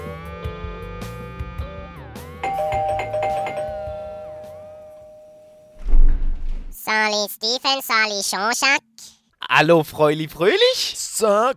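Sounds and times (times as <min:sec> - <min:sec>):
doorbell ringing: 0:02.4 - 0:05.8
speech: 0:07.1 - 0:08.8, 0:09.5 - 0:11.5.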